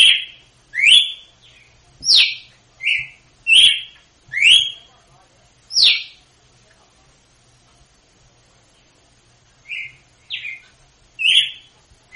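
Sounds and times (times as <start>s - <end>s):
female red-cowled cardinal singing in Northeast Brazil style: 0.0s - 4.9s, 5.7s - 6.2s, 9.6s - 10.6s, 11.2s - 12.1s.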